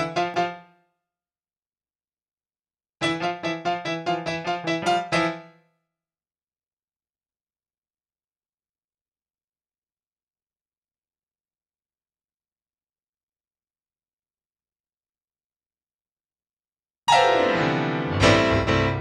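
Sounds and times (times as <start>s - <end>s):
keyboard playing: 3.0s - 5.4s, 17.1s - 18.9s.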